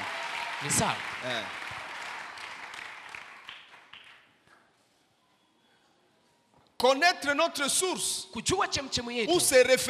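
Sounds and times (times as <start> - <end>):
church congregation calling out and cheering to acclaim the Lord: 0.0 - 3.6
church congregation soft clapping: 0.4 - 4.7
speech: 0.6 - 1.6, 6.8 - 9.8.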